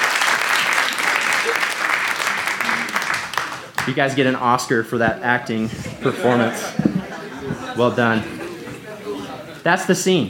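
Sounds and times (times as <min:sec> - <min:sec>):
audience applause: 0:00.0 - 0:04.0
speech: 0:03.9 - 0:06.9, 0:07.8 - 0:08.4, 0:09.6 - 0:10.2
laughter: 0:05.2 - 0:09.7.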